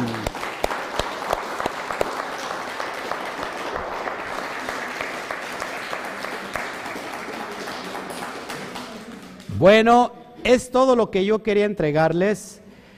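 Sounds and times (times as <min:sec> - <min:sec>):
loud crowd applause: 0:00.0 - 0:09.6
speech: 0:09.6 - 0:12.6.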